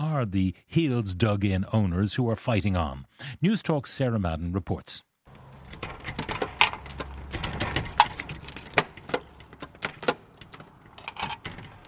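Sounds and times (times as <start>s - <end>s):
speech: 0.2s - 5.1s
bunch of keys jangling while locking up shop: 5.5s - 11.8s.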